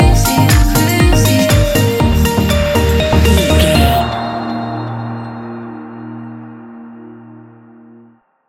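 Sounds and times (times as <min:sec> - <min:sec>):
fast-paced club music: 0:00.0 - 0:06.2.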